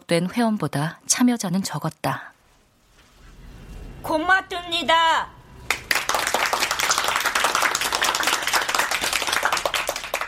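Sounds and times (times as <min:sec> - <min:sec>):
speech: 0:00.1 - 0:02.4, 0:04.0 - 0:05.4
applause after an introduction: 0:05.6 - 0:10.2.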